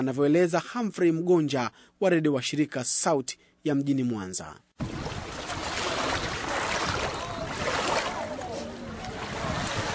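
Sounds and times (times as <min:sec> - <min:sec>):
speech: 0:00.0 - 0:05.0
wind on the shore of Lake Victoria in Mwanza: 0:00.0 - 0:09.9
fishing boat noise at Lake Victoria: 0:04.8 - 0:09.9
water at Lake Victoria in Mwanza: 0:04.8 - 0:09.9.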